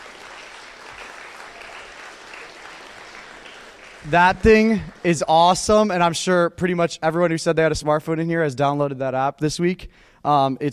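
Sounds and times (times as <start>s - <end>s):
audience applause: 0.0s - 6.0s
speech: 4.0s - 10.7s.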